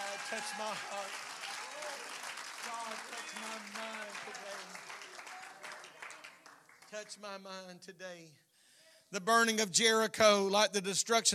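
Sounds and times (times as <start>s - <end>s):
audience clapping hands: 0.0s - 7.6s
speech: 0.3s - 5.0s, 6.9s - 8.4s, 9.1s - 11.3s.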